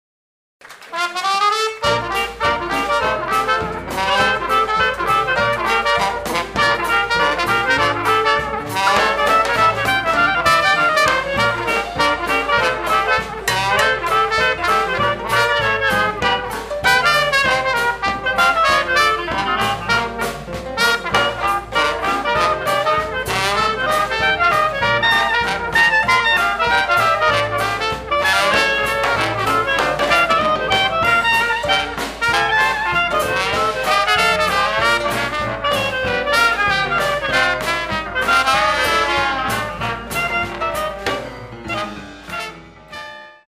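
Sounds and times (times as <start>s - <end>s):
1920 music: 0.9s - 43.4s.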